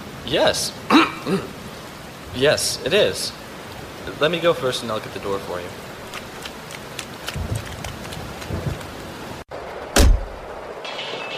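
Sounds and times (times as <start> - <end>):
steady rain pattering: 0.0 - 11.3
speech: 0.3 - 1.6, 2.3 - 3.4, 4.0 - 5.9
loud deep thump: 10.0 - 10.4.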